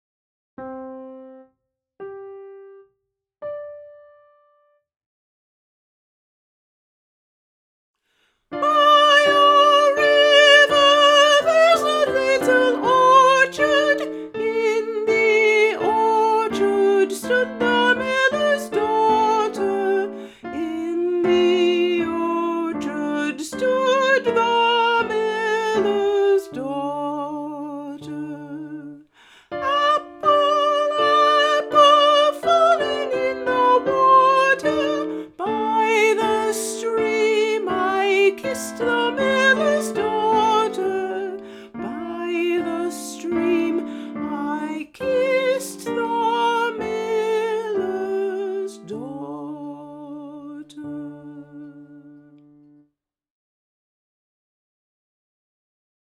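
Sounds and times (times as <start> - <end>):
soprano singing: 8.6 - 52.7.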